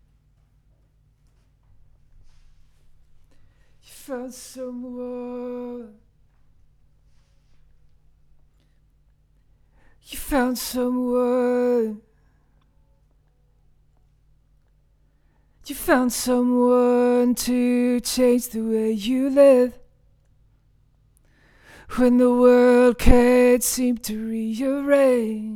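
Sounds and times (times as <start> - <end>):
vocals: 3.8 - 6.5, 9.8 - 12.7, 15.6 - 19.9, 21.6 - 25.5.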